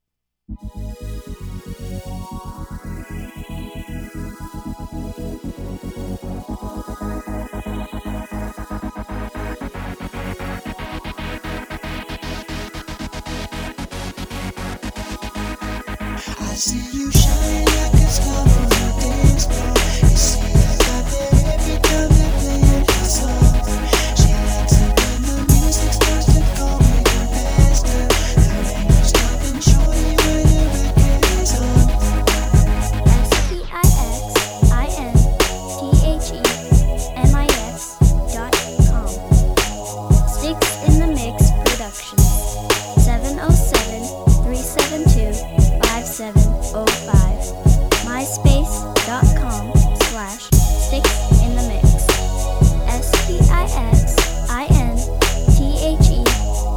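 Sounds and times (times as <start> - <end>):
dance floor music: 16.2 - 56.7.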